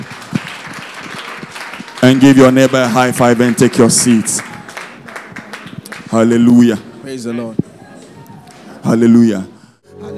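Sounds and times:
crowd applause: 0.0 - 6.1
speech: 2.0 - 4.5, 6.2 - 7.6, 8.9 - 9.5.

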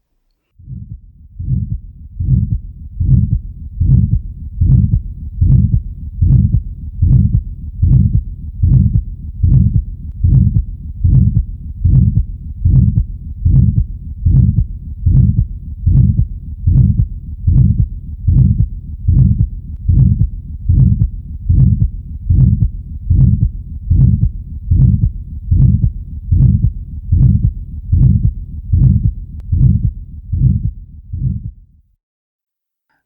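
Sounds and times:
loud harsh systolic heart murmur of aortic stenosis through a stethoscope: 0.6 - 31.7.

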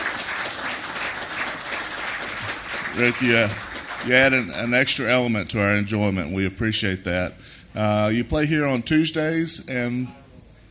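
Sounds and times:
audience applause: 0.0 - 4.8
speech: 3.0 - 10.2.

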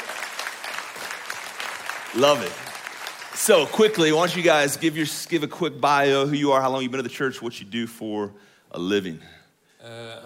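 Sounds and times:
audience clapping: 0.0 - 5.1
speech: 2.1 - 2.7, 3.4 - 10.2.

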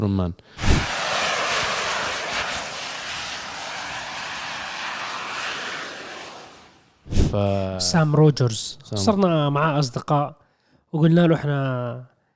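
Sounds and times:
speech: 0.0 - 0.9, 7.3 - 12.1
jetpack thrust engine roaring: 0.6 - 7.4.

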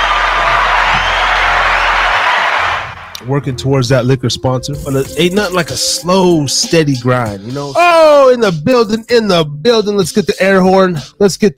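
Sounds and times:
applause: 0.0 - 3.1
cheering: 0.0 - 3.2
speech: 3.3 - 11.5.

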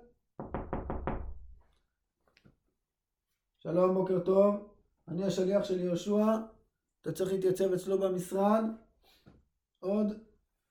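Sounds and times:
knocking on a door: 0.4 - 1.6
speech: 3.6 - 8.8, 9.8 - 10.3.

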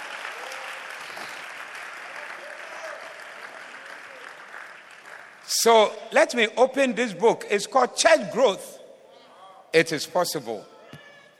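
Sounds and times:
audience applause: 0.0 - 5.5
speech: 5.6 - 8.7, 9.7 - 10.7.

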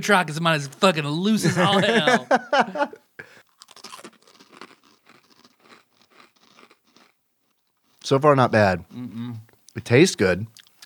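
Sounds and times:
speech: 0.0 - 3.0, 8.1 - 10.8
laughter: 1.3 - 3.4
chewing jerky coated in Reaper Squeezins hot sauce: 3.4 - 8.0.

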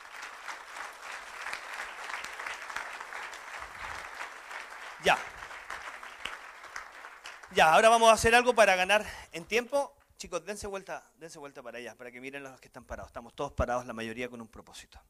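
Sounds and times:
audience applause: 0.0 - 7.9
speech: 5.0 - 5.3, 7.6 - 15.0.

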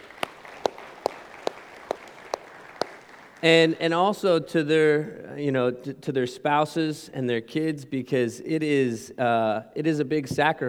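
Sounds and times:
round of applause: 0.0 - 3.9
speech: 3.4 - 10.6.

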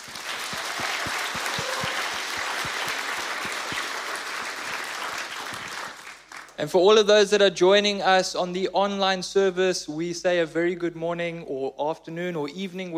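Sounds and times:
audience applause: 0.0 - 6.6
speech: 6.6 - 12.9.

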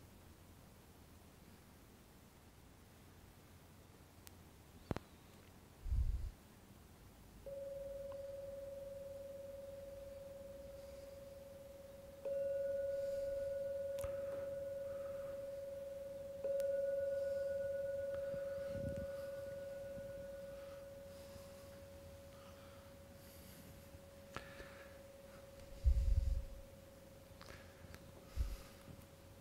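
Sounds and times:
gong ringing: 7.5 - 26.8.

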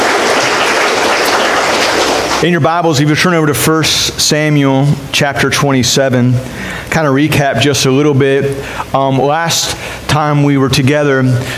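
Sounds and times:
audience applause: 0.0 - 2.4
speech: 2.4 - 11.5.

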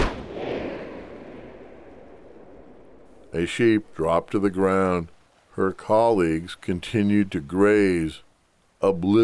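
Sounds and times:
scoped rifle shot: 0.0 - 3.3
speech: 3.3 - 9.2.

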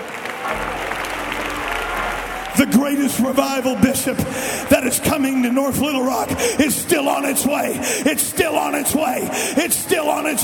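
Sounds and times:
audience clapping: 0.0 - 4.1
low hum: 0.5 - 7.4
speech: 2.6 - 10.4.

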